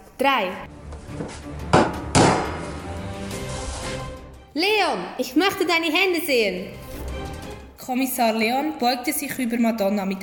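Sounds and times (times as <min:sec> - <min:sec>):
speech: 0:00.2 - 0:01.9, 0:03.9 - 0:06.8, 0:07.8 - 0:10.2
door being rammed by police: 0:01.1 - 0:02.9.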